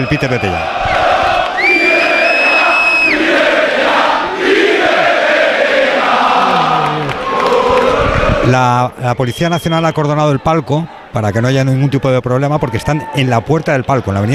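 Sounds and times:
speech: 0.0s - 0.8s, 8.5s - 14.3s
football fans chanting outside stadium on Avenida de Suecia: 0.3s - 8.6s.

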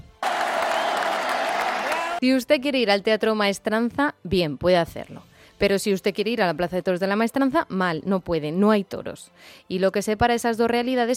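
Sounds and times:
crowd ovation applause: 0.2s - 2.2s
speech: 2.2s - 11.1s.

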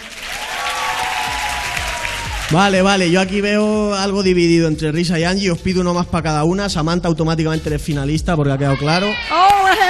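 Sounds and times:
audience clapping to vote: 0.0s - 3.9s
speech: 2.5s - 9.8s.

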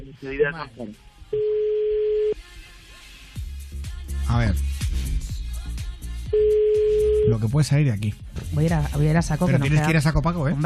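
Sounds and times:
speech: 0.1s - 1.6s, 4.3s - 4.8s, 7.3s - 10.6s
telephone ringing tone while placing a call: 1.4s - 2.4s, 6.3s - 7.3s.

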